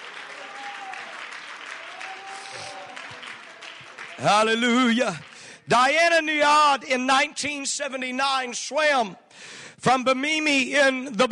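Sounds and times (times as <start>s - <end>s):
audience clapping: 0.0s - 6.0s
speech: 4.2s - 11.3s.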